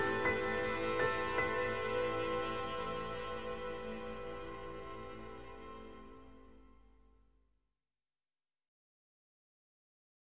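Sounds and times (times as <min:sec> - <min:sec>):
harp: 0:00.0 - 0:06.9.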